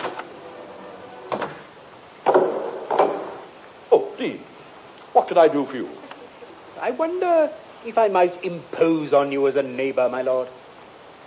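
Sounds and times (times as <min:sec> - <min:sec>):
front door being opened: 0:00.0 - 0:03.4
speech: 0:04.2 - 0:04.5, 0:05.2 - 0:06.0, 0:06.8 - 0:10.6.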